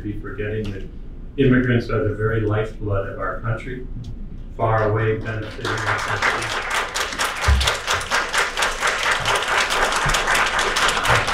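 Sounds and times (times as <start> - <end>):
speech: 0.0 - 6.7
crowd applauding at citizenship ceremony: 5.4 - 11.3.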